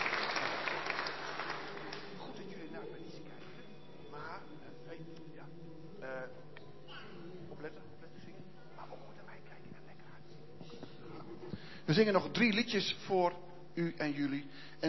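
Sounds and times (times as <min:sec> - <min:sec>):
audience applause: 0:00.0 - 0:02.3
speech: 0:11.9 - 0:14.8.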